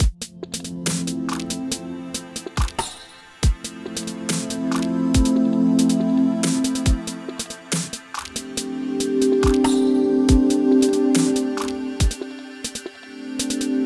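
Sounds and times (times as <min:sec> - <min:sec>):
music loop: 0:00.0 - 0:13.7.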